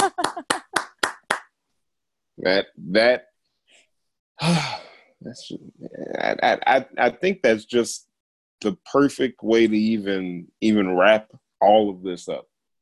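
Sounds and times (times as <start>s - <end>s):
one person clapping hands: 0.0s - 1.5s
speech: 2.4s - 3.3s, 5.3s - 12.5s.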